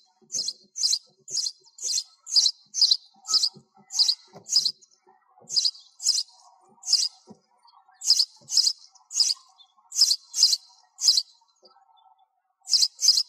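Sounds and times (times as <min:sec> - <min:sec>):
sparrow chirping: 0:00.0 - 0:12.0, 0:12.7 - 0:13.2.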